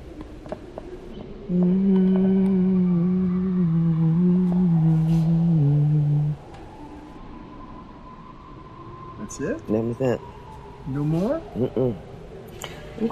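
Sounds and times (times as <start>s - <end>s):
speech: 1.5s - 2.0s, 9.4s - 12.1s, 13.0s - 13.1s
person humming: 1.5s - 6.4s, 11.6s - 12.0s.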